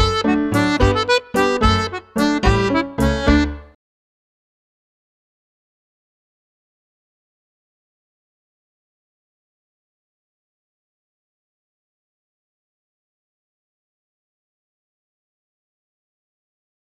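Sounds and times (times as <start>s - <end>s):
treble jig tune: 0.0s - 3.8s.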